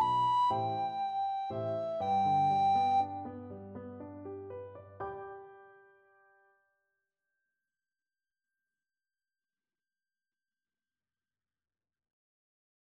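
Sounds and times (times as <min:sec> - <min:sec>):
recorder melody: 0:00.0 - 0:03.4.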